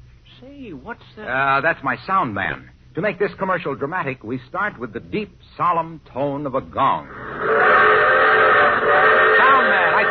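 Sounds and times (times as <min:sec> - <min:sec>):
speech: 0:00.4 - 0:07.7
train whistle: 0:07.2 - 0:10.0.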